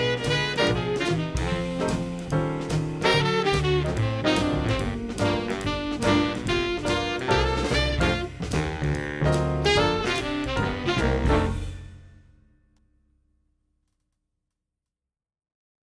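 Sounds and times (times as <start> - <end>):
saxophone: 0.0 - 2.3, 3.0 - 11.7.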